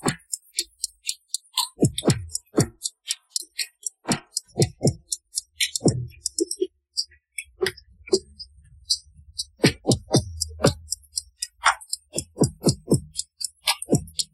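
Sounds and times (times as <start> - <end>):
drum: 1.8 - 2.8, 4.1 - 6.6, 9.5 - 11.0, 11.6 - 14.3.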